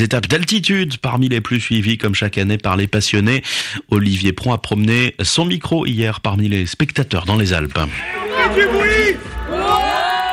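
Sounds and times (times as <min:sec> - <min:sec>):
speech: 0:00.0 - 0:09.3
children cheering and shouting: 0:08.0 - 0:10.3.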